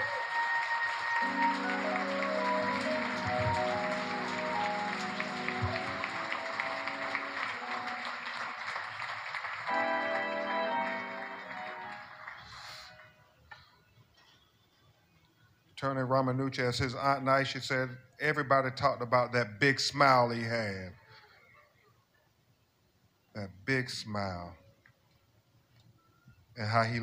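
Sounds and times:
audience applause: 0.0 - 13.2
speech: 15.8 - 21.0, 23.4 - 24.6, 26.6 - 27.0.

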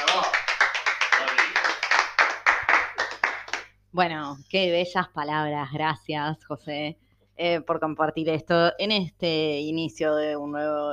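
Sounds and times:
applause: 0.0 - 3.8
speech: 3.9 - 10.9.

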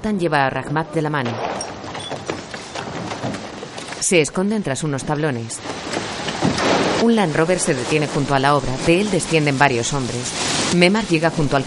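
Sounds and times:
speech: 0.0 - 1.7, 4.1 - 11.6
men running down a staircase at a building site: 1.7 - 4.0
steady hiss: 2.5 - 11.6.

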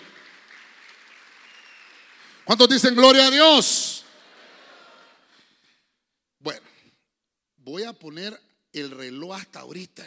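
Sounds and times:
audience clapping: 0.0 - 5.2
speech: 2.5 - 3.9, 8.0 - 10.0.

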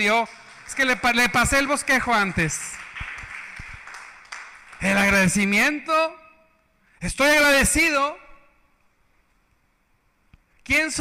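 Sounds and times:
speech: 0.0 - 2.8, 4.8 - 6.2, 7.0 - 8.2, 10.7 - 10.9
applause: 0.0 - 5.5.

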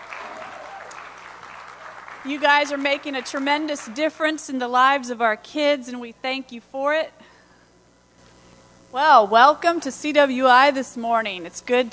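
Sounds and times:
audience hand clapping: 0.0 - 4.2
speech: 2.2 - 7.3, 8.9 - 11.9.

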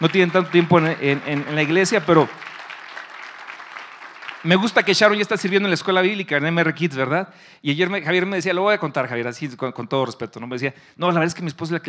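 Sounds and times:
speech: 0.0 - 2.5, 4.4 - 11.8
audience applauding: 0.0 - 5.7.

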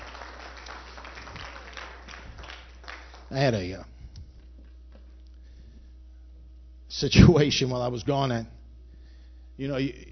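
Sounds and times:
audience hand clapping: 0.0 - 5.2
speech: 3.3 - 3.9, 7.0 - 8.6, 9.6 - 10.0.

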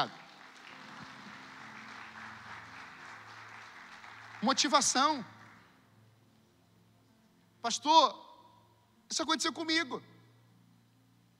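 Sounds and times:
audience applauding: 0.0 - 5.8
speech: 4.4 - 5.4, 7.6 - 8.2, 9.1 - 10.1.

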